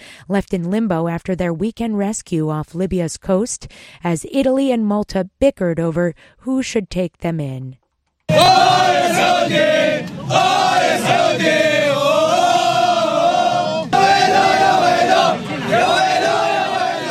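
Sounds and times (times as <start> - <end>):
speech: 0.3 - 11.8
World Cup football fans cheering and chanting in Russia: 8.3 - 17.0.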